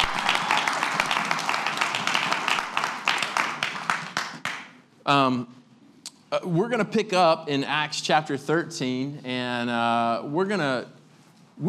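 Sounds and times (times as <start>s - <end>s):
crowd clapping: 0.0s - 4.8s
speech: 5.1s - 5.6s, 6.3s - 11.0s.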